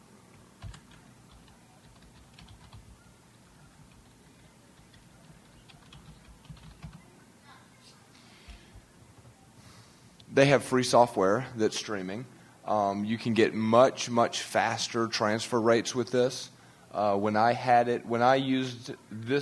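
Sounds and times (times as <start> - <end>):
typing on a computer keyboard: 0.6 - 3.0, 3.8 - 7.1
speech: 10.4 - 19.4.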